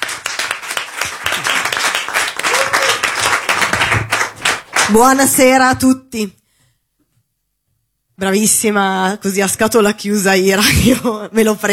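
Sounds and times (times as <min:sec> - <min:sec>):
audience applause: 0:00.0 - 0:05.0
speech: 0:04.9 - 0:06.4, 0:08.2 - 0:11.7.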